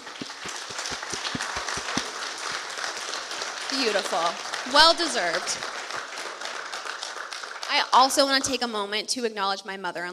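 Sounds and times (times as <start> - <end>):
audience round of applause: 0.0 - 8.3
speech: 3.7 - 5.7, 7.7 - 10.1.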